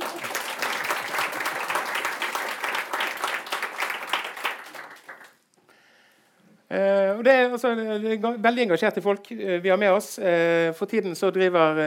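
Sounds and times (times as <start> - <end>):
audience applause: 0.0 - 5.4
speech: 6.7 - 11.8.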